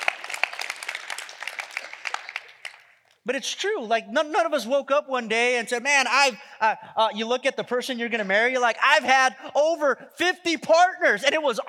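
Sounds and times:
church audience clapping: 0.0s - 3.2s
speech: 3.2s - 11.6s.

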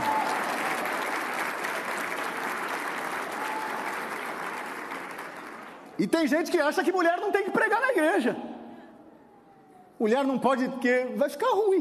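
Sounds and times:
audience applause: 0.0s - 6.0s
speech: 6.0s - 8.5s, 10.0s - 11.7s.

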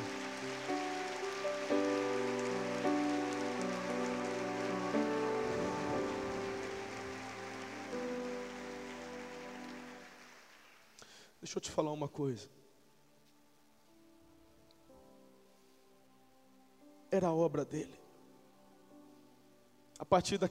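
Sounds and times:
audience applause: 0.0s - 11.2s
speech: 11.4s - 12.6s, 17.2s - 18.0s, 20.0s - 20.5s.

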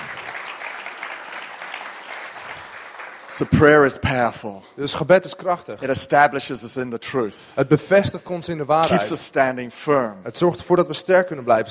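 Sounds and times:
audience applause: 0.0s - 3.9s
speech: 3.4s - 11.6s.

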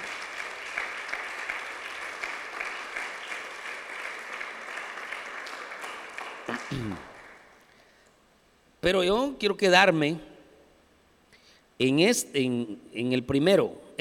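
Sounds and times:
audience applause: 0.0s - 7.5s
speech: 6.7s - 7.1s, 8.8s - 10.3s, 11.8s - 13.9s.

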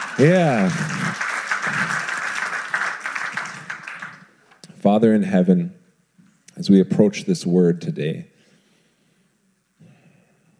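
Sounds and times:
audience applause: 0.0s - 4.4s
speech: 0.2s - 2.0s, 4.9s - 5.8s, 6.6s - 8.3s.

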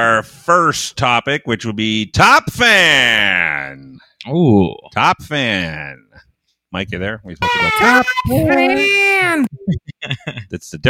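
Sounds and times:
speech: 0.0s - 10.8s
adults talking over the call: 7.4s - 9.5s
infant girl crying: 7.4s - 9.5s.

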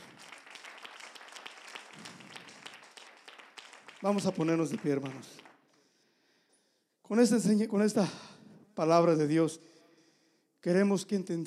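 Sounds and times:
crowd audience applauding: 0.0s - 5.8s
speech: 4.0s - 5.5s, 7.1s - 9.7s, 10.6s - 11.4s.

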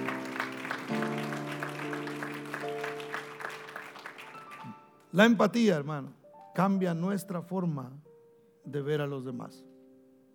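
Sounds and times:
keyboard or organ chords: 0.0s - 5.1s
audience rhythmic clapping: 0.0s - 5.2s
speech: 5.1s - 9.7s.

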